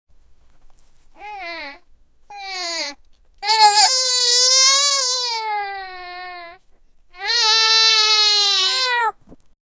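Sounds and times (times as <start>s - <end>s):
small child weeping: 1.2s - 6.6s, 7.2s - 9.2s.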